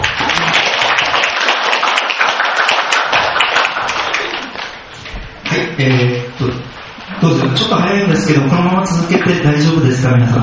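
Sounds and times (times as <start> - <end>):
audience clapping: 0.0 - 5.6
speech: 5.8 - 6.2, 7.6 - 10.4.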